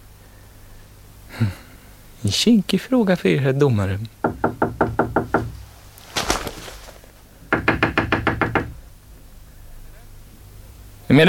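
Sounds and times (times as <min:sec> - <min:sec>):
speech: 0:01.4 - 0:01.6, 0:02.2 - 0:04.2
knocking on a door: 0:04.2 - 0:05.6, 0:07.5 - 0:08.8
short scraping rustle: 0:05.5 - 0:07.3.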